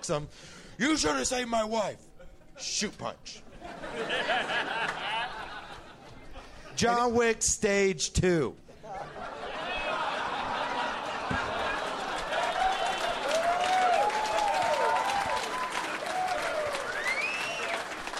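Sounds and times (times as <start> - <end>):
speech: 0.0 - 4.8, 6.8 - 8.6
scattered laughter: 3.5 - 6.5, 8.9 - 13.2
crowd applauding: 9.8 - 18.1
cheers and whoops: 12.2 - 18.1.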